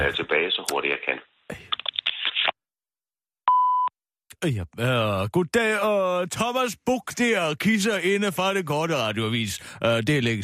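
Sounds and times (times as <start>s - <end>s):
speech: 0.1s - 1.3s, 4.4s - 10.4s
voicemail beep tone: 3.5s - 3.9s.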